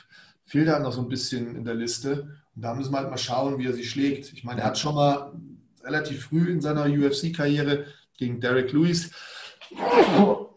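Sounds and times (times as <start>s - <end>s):
speech: 0.5s - 10.4s
person sneezing: 9.6s - 10.5s.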